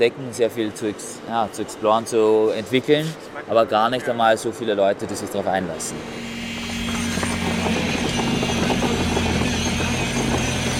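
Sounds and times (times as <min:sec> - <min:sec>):
speech: 0:00.0 - 0:06.3
electric vibrating rods humming as they compact clay: 0:05.8 - 0:10.7.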